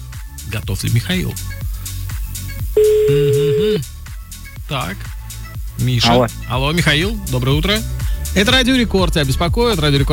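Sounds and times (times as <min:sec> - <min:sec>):
speech: 0:00.5 - 0:01.7, 0:02.8 - 0:03.9, 0:04.7 - 0:05.2, 0:05.8 - 0:10.1
telephone ringback tone as a radio host phones a listener: 0:02.8 - 0:03.8.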